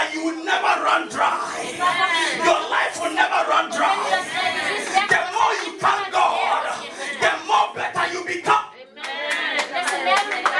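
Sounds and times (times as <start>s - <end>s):
faint murmur of voices: 0.0s - 10.5s
speech: 0.5s - 5.2s
crowd clapping: 9.0s - 10.5s.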